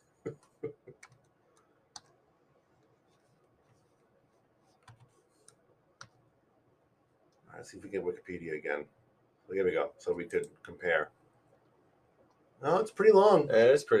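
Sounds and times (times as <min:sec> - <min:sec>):
quiet typing on a computer keyboard: 0:00.3 - 0:04.0, 0:04.6 - 0:06.3
speech: 0:07.6 - 0:11.2, 0:12.6 - 0:13.9.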